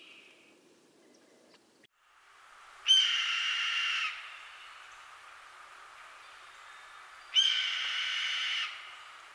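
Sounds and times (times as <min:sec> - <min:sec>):
red-tailed hawk calling: 0:02.4 - 0:09.3.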